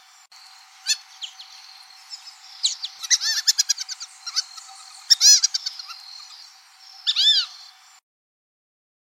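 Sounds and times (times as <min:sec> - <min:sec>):
fulvous whistling duck calling: 0:02.6 - 0:06.3.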